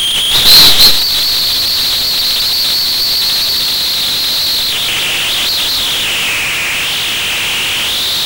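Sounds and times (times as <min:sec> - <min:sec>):
ultrasound locating tone in air: 0:00.2 - 0:08.2.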